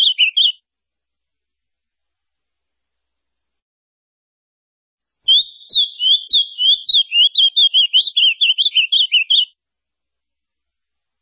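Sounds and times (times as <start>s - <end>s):
ultramarine grosbeak song: 0.0s - 0.6s, 5.3s - 9.5s.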